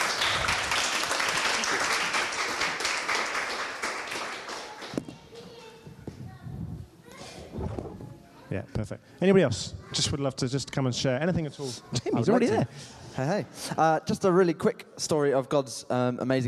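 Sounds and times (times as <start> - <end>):
audience applause: 0.0 - 5.4
speech: 8.6 - 16.4.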